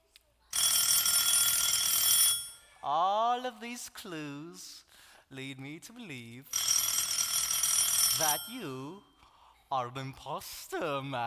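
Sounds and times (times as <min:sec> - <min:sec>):
shoe phone ringing: 0:00.6 - 0:02.8, 0:06.5 - 0:09.2
speech: 0:02.9 - 0:06.7, 0:08.2 - 0:09.1, 0:09.7 - 0:11.2.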